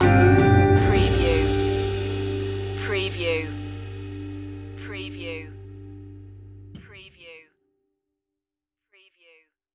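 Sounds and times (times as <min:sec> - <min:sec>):
parish hall musical stinger: 0:00.0 - 0:06.7.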